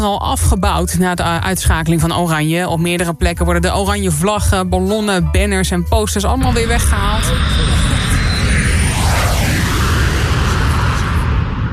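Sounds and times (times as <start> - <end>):
speech: 0.0 - 7.9
Boeing 737 airliner flying overhead: 6.5 - 11.7.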